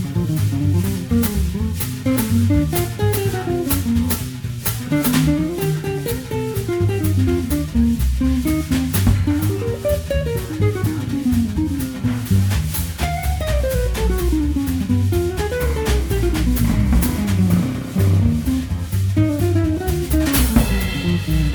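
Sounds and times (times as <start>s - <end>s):
17-inch archtop guitar played live: 0.0s - 21.5s.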